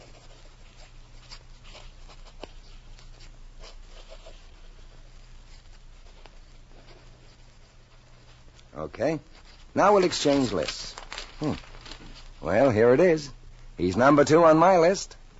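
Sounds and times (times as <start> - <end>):
pencils scratching on paper writing lists: 0.0 - 10.9
low constant hum: 0.0 - 15.3
speech: 8.8 - 11.7, 12.4 - 15.3.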